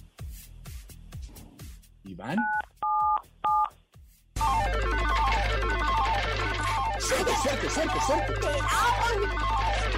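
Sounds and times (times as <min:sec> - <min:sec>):
speech: 0:02.1 - 0:02.8, 0:07.1 - 0:09.9
two-tone telephone keypad beeps: 0:02.4 - 0:03.7
busy electronic jingle with cascading descending notes: 0:04.4 - 0:09.9.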